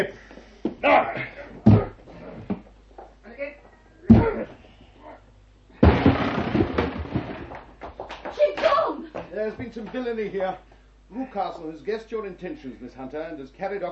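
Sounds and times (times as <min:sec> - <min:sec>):
speech: 0:00.0 - 0:01.3, 0:09.5 - 0:13.8
voices and grunts of effort: 0:00.8 - 0:02.5, 0:03.4 - 0:05.3, 0:11.1 - 0:11.7
shoulder thuds against a wooden door: 0:01.6 - 0:02.0, 0:05.8 - 0:07.6
wooden door splintering crash: 0:05.8 - 0:07.7.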